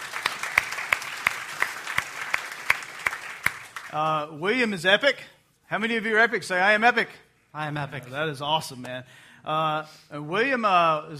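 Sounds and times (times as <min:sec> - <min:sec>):
audience clapping to welcome a speaker: 0:00.0 - 0:04.0
speech: 0:03.9 - 0:11.1.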